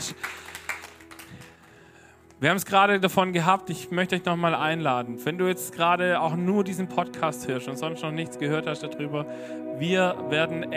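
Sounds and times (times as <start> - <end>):
scattered audience hand claps from a small group: 0.0 - 2.4
speech: 2.4 - 10.7.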